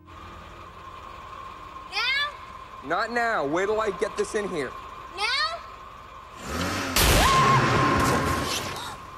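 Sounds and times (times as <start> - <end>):
speech: 2.8 - 5.3
electric shock from car jump leads: 6.5 - 9.0.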